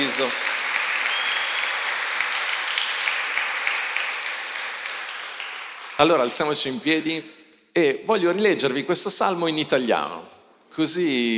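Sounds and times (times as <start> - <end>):
crowd applauding: 0.0 - 6.5
speech: 0.2 - 0.6, 6.0 - 11.3.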